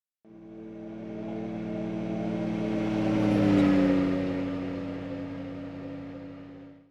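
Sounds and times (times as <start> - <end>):
sci-fi vehicle passing by: 0.3 - 6.8.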